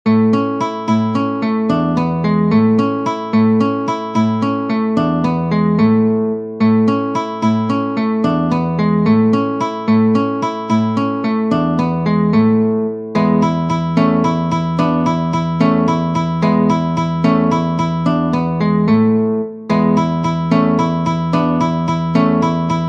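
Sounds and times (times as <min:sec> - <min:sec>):
waltz on guitar: 0:00.1 - 0:22.8.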